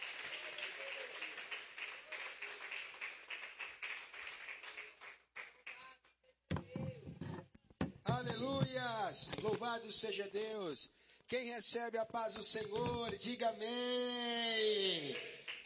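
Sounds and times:
church congregation clapping hands: 0.0 - 5.9, 14.9 - 15.6
speech: 8.1 - 15.6.

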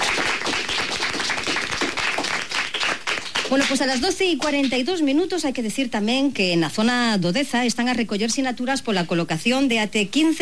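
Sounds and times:
group of schoolchildren applauding: 0.0 - 4.0
speech: 3.5 - 10.4.

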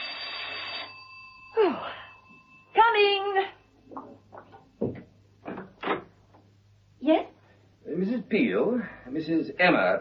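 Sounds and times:
doorbell ringing: 0.0 - 3.6
speech: 8.3 - 10.0.

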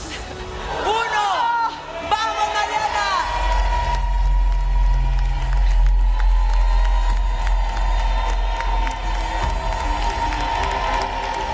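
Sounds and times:
audience cheering for a contest winner in Mexico: 0.6 - 11.5
audience applause for a contest winner: 3.0 - 11.5.

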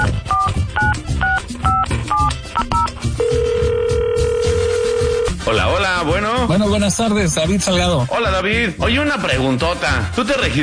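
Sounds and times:
telephone number dialing beeps: 0.0 - 5.3
music playing: 0.0 - 10.6
speech: 6.7 - 10.6.

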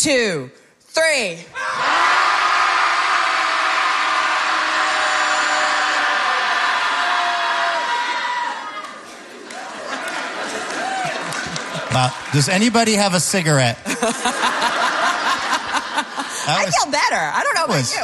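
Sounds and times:
speech: 0.0 - 2.0, 11.9 - 14.7, 16.5 - 18.0
group of people shouting together: 1.6 - 9.0
laughter: 8.9 - 12.5, 13.8 - 16.9.

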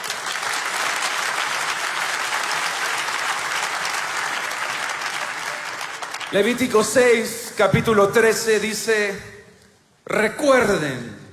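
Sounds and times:
church congregation clapping: 0.0 - 7.5
speech: 6.3 - 9.3, 10.1 - 11.1.

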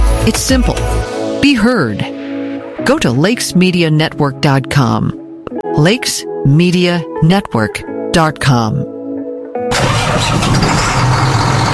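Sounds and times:
speech: 0.2 - 2.2, 2.8 - 5.2, 5.8 - 8.9
heavy truck engine starting and revving: 9.7 - 11.7.

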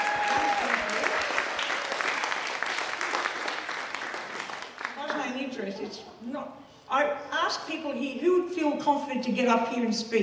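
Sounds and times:
loud audience applause: 0.0 - 5.4
speech: 5.6 - 10.2.

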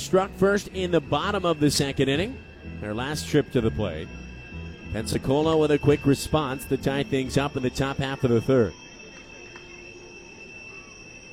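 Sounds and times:
speech: 0.0 - 4.2, 4.9 - 8.8
train wheels screeching past a baseball stadium: 0.0 - 11.3.

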